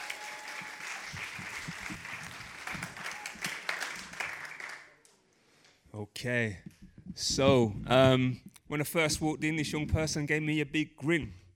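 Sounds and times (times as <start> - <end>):
audience applause: 0.0 - 5.0
speech: 6.2 - 11.4.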